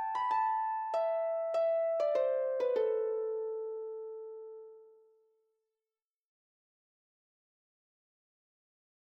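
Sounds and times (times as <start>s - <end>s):
harp tune: 0.0s - 4.9s.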